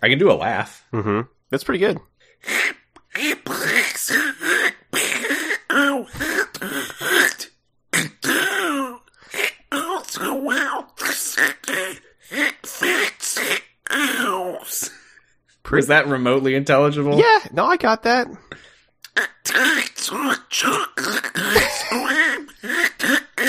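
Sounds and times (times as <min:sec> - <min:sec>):
speech: 0:00.0 - 0:03.7, 0:15.7 - 0:18.5
person imitating Donald Duck's voice: 0:02.4 - 0:14.9, 0:19.1 - 0:23.4.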